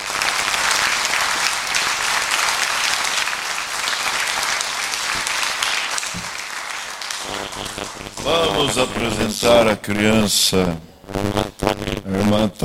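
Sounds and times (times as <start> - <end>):
audience applauding: 0.0 - 8.9
speech: 8.2 - 12.6.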